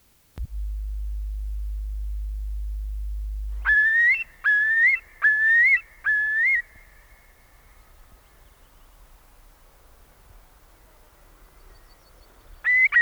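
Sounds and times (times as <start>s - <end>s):
low hum: 0.4s - 4.3s
common gull calls: 1.9s - 6.7s.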